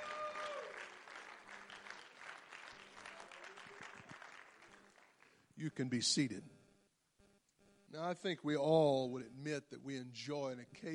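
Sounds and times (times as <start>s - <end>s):
audience clapping: 0.0s - 5.4s
speech: 5.6s - 6.6s, 7.9s - 10.9s.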